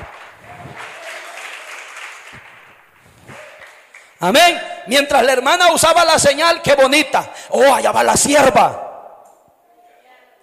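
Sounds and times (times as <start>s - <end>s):
audience applause: 0.0s - 4.2s
speech: 4.2s - 8.8s.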